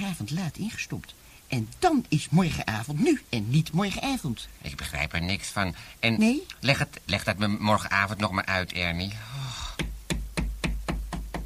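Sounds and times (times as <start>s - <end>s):
speech: 0.1s - 9.4s
knocking on a door: 9.8s - 11.4s.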